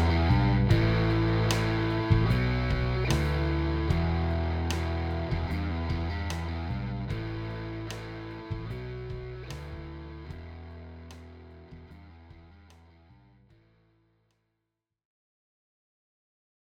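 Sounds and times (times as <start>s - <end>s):
E minor pentatonic riff: 0.0s - 13.2s.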